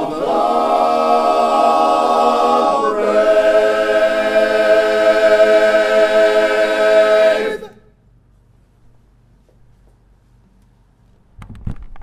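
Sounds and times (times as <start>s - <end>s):
chorus singing: 0.0s - 7.9s.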